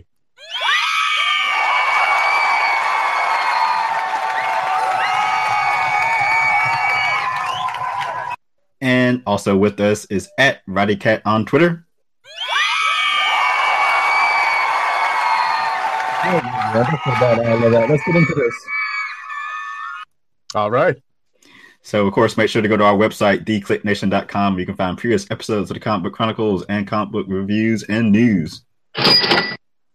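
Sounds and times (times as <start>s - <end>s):
canned applause and crowd cheering with shrill whoops and screams: 0.5s - 8.4s, 12.4s - 20.1s
speech: 9.3s - 11.8s, 16.7s - 18.8s, 20.5s - 21.1s, 21.8s - 29.6s.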